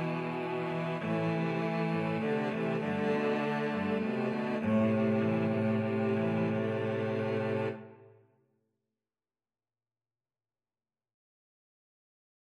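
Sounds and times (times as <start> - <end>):
Spanish violin and cello ensemble: 0.0 - 8.0.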